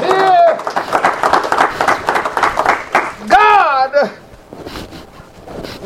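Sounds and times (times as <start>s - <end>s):
person whooping: 0.0s - 0.7s, 3.0s - 4.2s
audience hand clapping: 0.0s - 3.4s.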